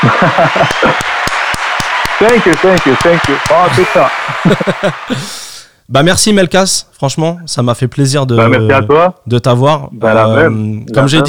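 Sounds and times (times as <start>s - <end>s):
laughter: 0.0s - 1.2s, 3.6s - 5.5s
speech: 0.0s - 1.2s, 2.2s - 11.2s
applause: 0.0s - 5.3s.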